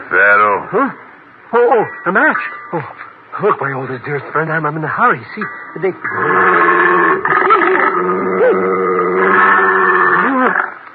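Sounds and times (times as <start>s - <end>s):
speech: 0.2s - 9.6s
bloodhound baying: 6.1s - 10.3s.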